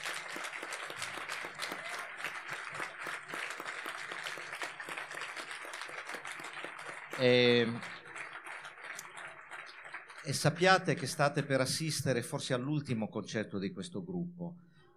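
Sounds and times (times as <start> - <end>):
crowd applause: 0.0 - 11.6
speech: 7.2 - 8.0, 10.3 - 14.7.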